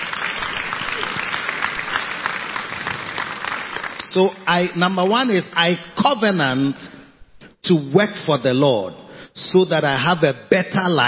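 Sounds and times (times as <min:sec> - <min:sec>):
crowd clapping hands: 0:00.0 - 0:04.4
speech: 0:04.1 - 0:07.0, 0:07.7 - 0:11.0.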